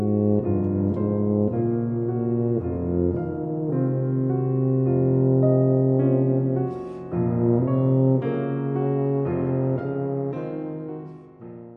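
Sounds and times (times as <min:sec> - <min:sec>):
tuba sonata: 0:00.0 - 0:11.7.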